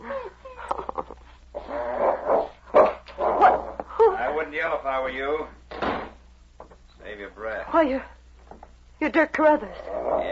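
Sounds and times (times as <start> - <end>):
dog growling: 1.5 - 3.8, 9.6 - 10.3
dog barking: 2.3 - 3.8
speech: 4.7 - 5.6, 7.2 - 8.2, 9.0 - 10.3.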